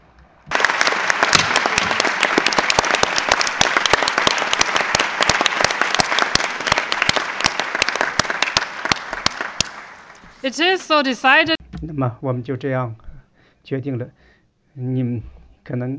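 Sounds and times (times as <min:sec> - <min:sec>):
meeting delegates applauding in a room: 0:00.5 - 0:11.5
speech: 0:10.4 - 0:13.0, 0:13.6 - 0:14.2, 0:14.8 - 0:15.9.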